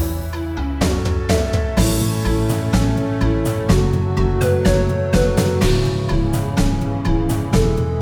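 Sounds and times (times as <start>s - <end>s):
intense forest-themed platformer game music: 0.1s - 8.0s.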